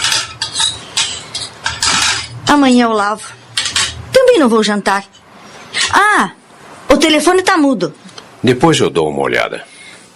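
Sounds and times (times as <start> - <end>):
plate being handled with dishware and cutlery clattering: 0.0 - 4.0
speech: 2.5 - 3.4, 4.3 - 5.2, 5.9 - 6.4, 7.0 - 10.1.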